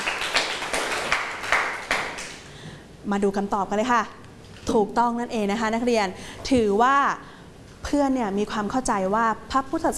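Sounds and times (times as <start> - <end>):
classmates clapping for a student: 0.0 - 2.5
speech: 3.1 - 9.9.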